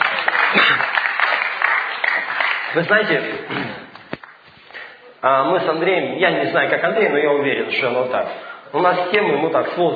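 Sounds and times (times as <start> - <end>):
audience applause: 0.0 - 4.4
speech: 2.8 - 3.8, 5.2 - 9.9.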